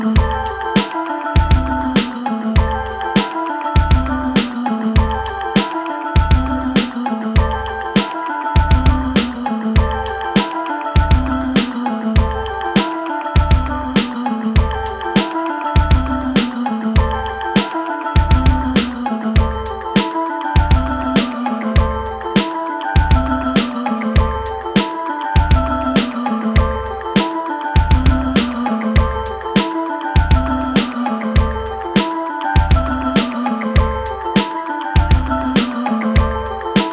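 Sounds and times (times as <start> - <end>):
electronic music at 100 BPM in A minor: 0.2 - 36.9.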